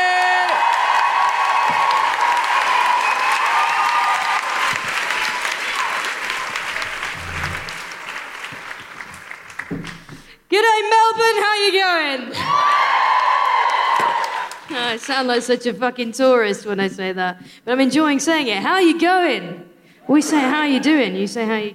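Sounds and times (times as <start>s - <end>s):
high woo-hoo cheers: 0.0s - 6.9s, 12.4s - 14.6s
audience applause at a live comedy show in Melbourne: 0.0s - 10.4s, 12.6s - 15.1s
speech: 10.6s - 12.5s, 14.7s - 21.7s.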